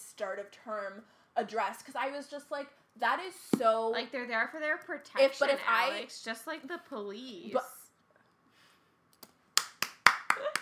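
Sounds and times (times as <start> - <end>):
speech: 0.2 - 7.8
hand claps: 9.2 - 10.6.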